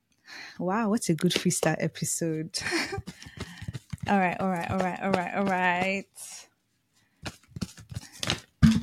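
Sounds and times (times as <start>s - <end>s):
speech: 0.6s - 3.4s, 4.1s - 6.5s
tarot cards being shuffled and falling out: 2.9s - 6.4s, 7.1s - 8.6s.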